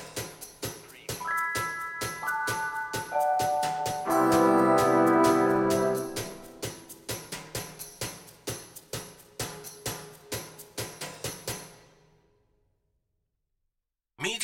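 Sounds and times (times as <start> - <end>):
woodwinds playing without strings: 1.2 - 6.8.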